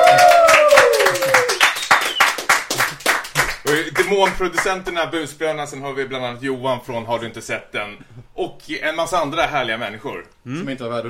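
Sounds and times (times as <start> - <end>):
high whoops and gliding whistle-like cheer: 0.0 - 2.4
audience clapping: 0.0 - 4.8
speech: 4.1 - 11.0.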